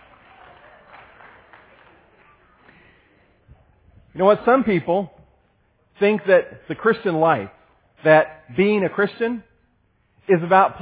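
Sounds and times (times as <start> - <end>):
crowd applauding: 0.0 - 3.1
speech: 4.2 - 5.2, 6.0 - 9.5, 10.3 - 10.8.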